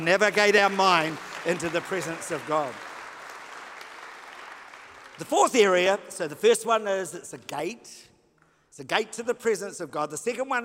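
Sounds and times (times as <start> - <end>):
speech: 0.0 - 2.9, 5.2 - 8.1, 8.7 - 10.6
audience applause: 0.0 - 5.8.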